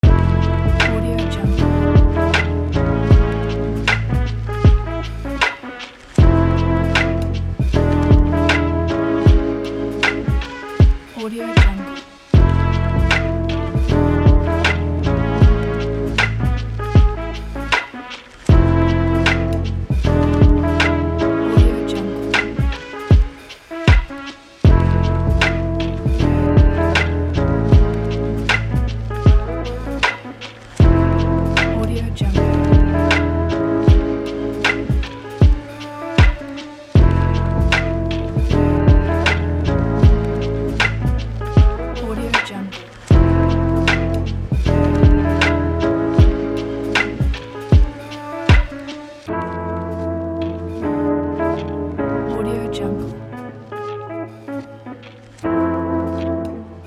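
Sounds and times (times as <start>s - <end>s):
lazy lofi beat: 0.0s - 56.8s.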